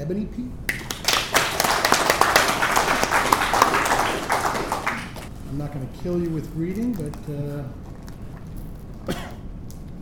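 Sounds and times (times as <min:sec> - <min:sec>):
speech: 0:00.1 - 0:00.7, 0:05.6 - 0:07.9
audience applause welcoming a panel at a meeting: 0:00.7 - 0:05.3.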